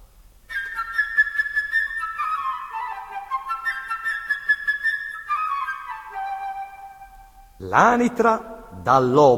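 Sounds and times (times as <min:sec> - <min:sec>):
flute melody representing a little bird: 0:00.5 - 0:08.7
speech: 0:07.6 - 0:09.3.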